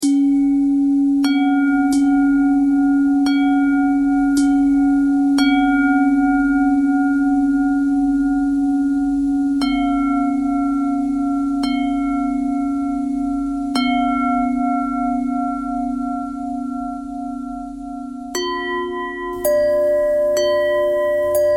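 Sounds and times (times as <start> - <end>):
bending bell tone: 0.0 - 21.5.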